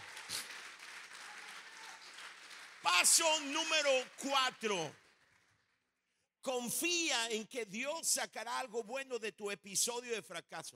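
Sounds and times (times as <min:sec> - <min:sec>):
audience applause: 0:00.0 - 0:05.4
speech: 0:03.0 - 0:05.0, 0:06.4 - 0:10.7.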